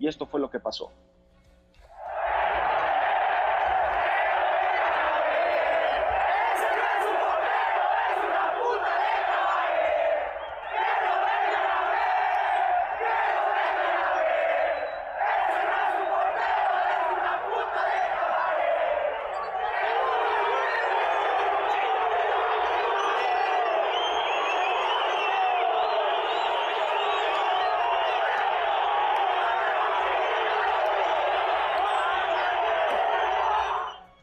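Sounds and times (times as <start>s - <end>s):
speech: 0.1s - 1.2s
stadium crowd shouting complaints at goalkeeper: 2.0s - 34.0s.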